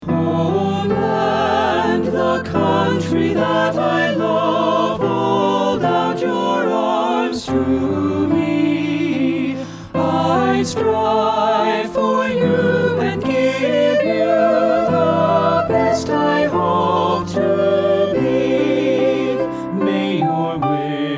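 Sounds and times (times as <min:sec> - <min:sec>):
SATB four-part choir singing: 0:00.0 - 0:21.1.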